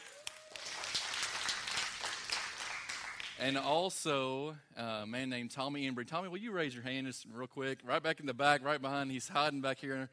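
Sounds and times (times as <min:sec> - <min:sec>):
audience cheering and clapping: 0:00.0 - 0:03.4
speech: 0:03.4 - 0:10.1.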